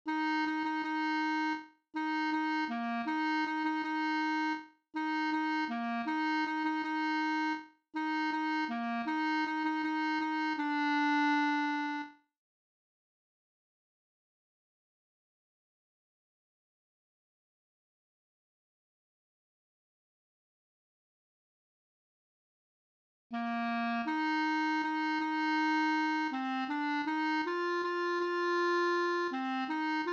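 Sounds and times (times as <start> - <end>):
B-flat clarinet melody: 0.1 - 12.2, 23.3 - 30.1.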